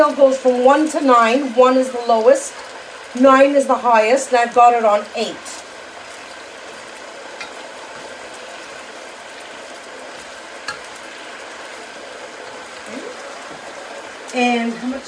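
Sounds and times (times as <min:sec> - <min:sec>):
stirring food in a sizzling pan: 0:00.0 - 0:15.0
speech: 0:00.1 - 0:05.6, 0:14.3 - 0:15.0.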